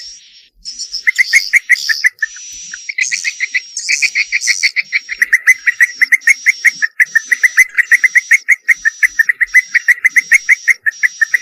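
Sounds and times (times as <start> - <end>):
swiftlet lure call twittering in quick high chirps: 0.0 - 11.4.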